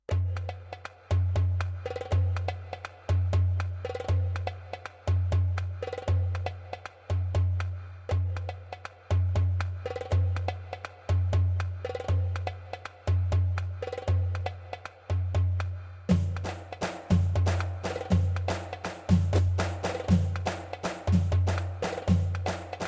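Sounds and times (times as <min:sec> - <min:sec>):
Arabic instrumental background music: 0:00.1 - 0:22.8.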